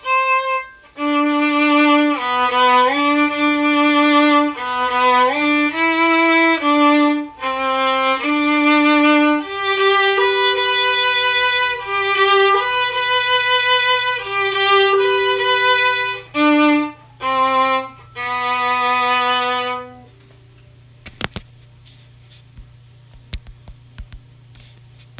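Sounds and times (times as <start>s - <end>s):
waltz violin harmony: 0.0s - 20.1s.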